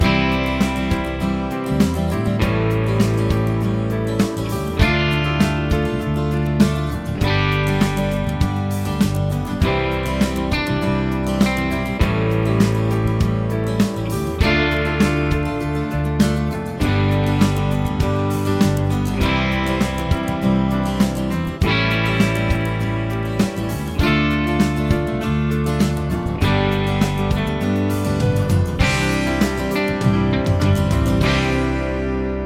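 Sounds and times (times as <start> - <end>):
chord progressions with applied chords: 0.0 - 32.4.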